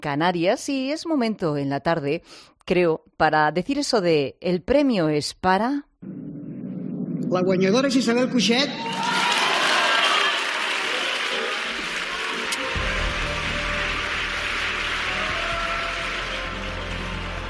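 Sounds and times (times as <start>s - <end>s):
speech: 0.0s - 6.2s, 7.2s - 9.4s
audience applause: 8.8s - 17.4s.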